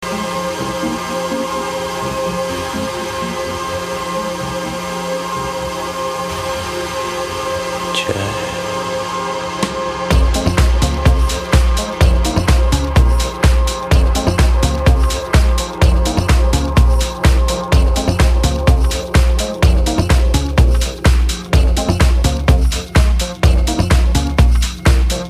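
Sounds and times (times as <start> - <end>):
jazz tech music: 0.0 - 25.2.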